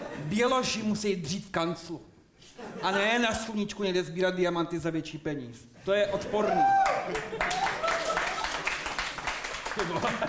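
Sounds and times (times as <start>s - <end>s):
speech: 0.3s - 7.7s, 9.8s - 10.2s
laughter: 2.4s - 3.4s, 6.1s - 8.8s, 9.7s - 10.2s
audience applause: 6.4s - 10.2s.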